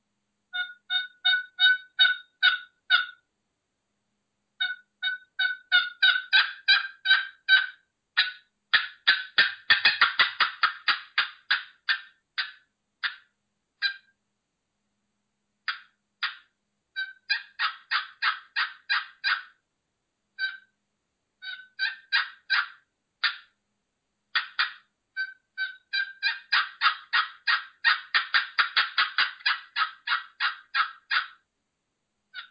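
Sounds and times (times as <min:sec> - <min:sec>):
turkey hen tree calls on a cherry friction call: 0:00.5 - 0:03.2, 0:04.6 - 0:14.2, 0:15.7 - 0:19.6, 0:20.4 - 0:20.8, 0:21.4 - 0:23.6, 0:24.3 - 0:31.4.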